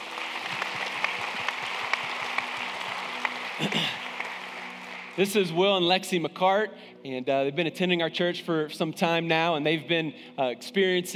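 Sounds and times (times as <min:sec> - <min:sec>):
audience applause: 0:00.0 - 0:05.8
speech: 0:03.6 - 0:04.0, 0:05.2 - 0:11.1.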